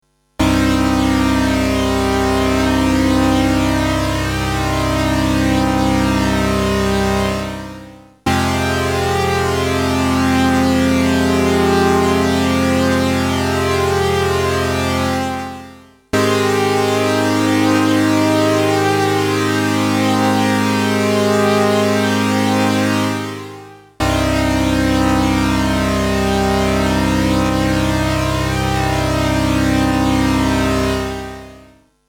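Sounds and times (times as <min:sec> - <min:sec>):
Boss CE-300 chorus effect: 0:00.4 - 0:31.8.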